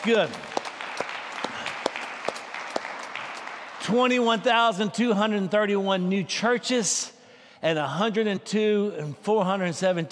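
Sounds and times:
speech: 0.0s - 0.5s, 3.9s - 10.1s
audience clapping: 0.0s - 4.5s.

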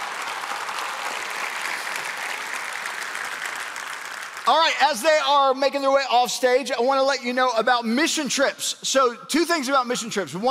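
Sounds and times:
round of applause: 0.0s - 5.6s
speech: 4.5s - 10.4s.

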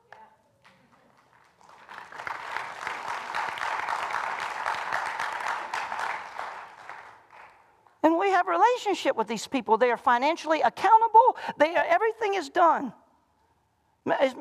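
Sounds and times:
audience clapping: 0.1s - 8.0s
speech: 8.0s - 13.0s, 14.1s - 14.3s.

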